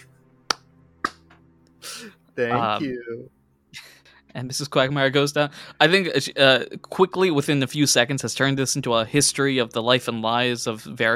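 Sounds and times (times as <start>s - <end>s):
single hand clap: 0.5s - 1.4s
speech: 2.0s - 11.1s.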